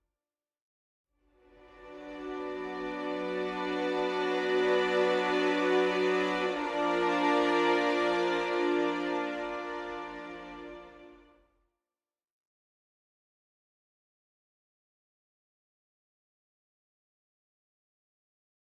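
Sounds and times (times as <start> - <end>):
ambient soundtrack music: 1.5 - 11.3.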